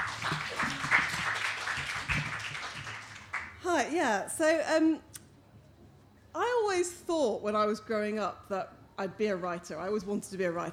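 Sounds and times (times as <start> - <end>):
audience applause: 0.0 - 3.6
speech: 3.8 - 5.1, 6.4 - 10.7.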